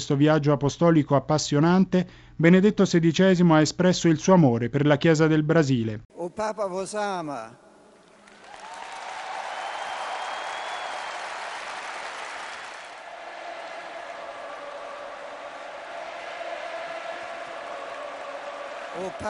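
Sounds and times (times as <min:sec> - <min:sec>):
speech: 0:00.0 - 0:07.6, 0:19.0 - 0:19.2
thunderous applause from a large crowd: 0:08.1 - 0:19.2
cheering whistles: 0:08.4 - 0:19.2.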